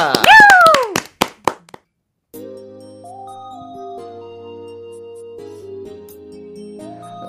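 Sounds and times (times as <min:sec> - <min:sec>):
audience clapping: 0:00.0 - 0:01.8.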